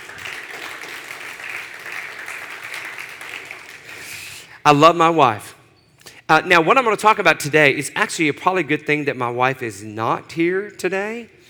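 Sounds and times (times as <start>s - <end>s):
audience clapping: 0.0s - 4.5s
speech: 4.6s - 5.5s, 6.3s - 11.4s.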